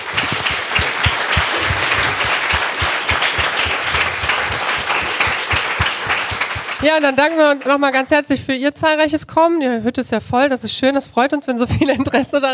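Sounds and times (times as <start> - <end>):
audience applause: 0.0 - 8.0
speech: 6.8 - 12.5.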